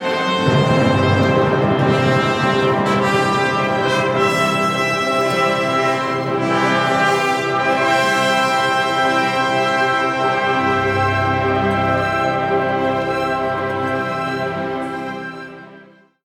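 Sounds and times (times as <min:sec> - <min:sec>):
sword motif leitmotif: 0:00.0 - 0:16.2.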